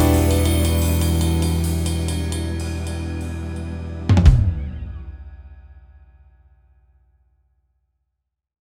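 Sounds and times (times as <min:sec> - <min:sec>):
funky pop music: 0:00.0 - 0:05.0.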